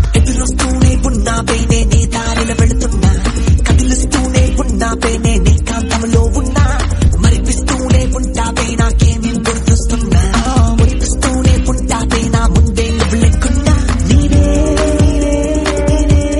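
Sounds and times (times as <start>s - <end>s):
Telugu movie song: 0.1s - 16.3s.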